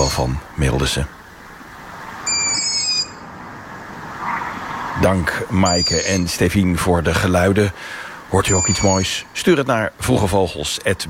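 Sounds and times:
speech: 0.0s - 1.2s, 5.0s - 11.0s
young long-eared owls begging calls: 0.0s - 6.5s, 7.7s - 9.4s.

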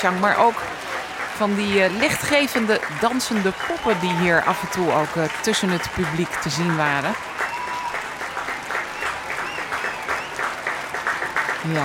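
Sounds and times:
speech: 0.0s - 0.8s, 1.4s - 7.4s, 11.6s - 11.8s
concert audience applauding enthusiastically: 0.0s - 11.8s.

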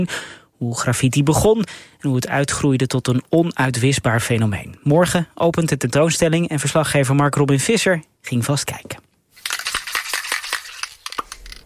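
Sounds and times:
speech: 0.0s - 9.1s
spray paint can rattling and spraying: 9.3s - 11.6s.

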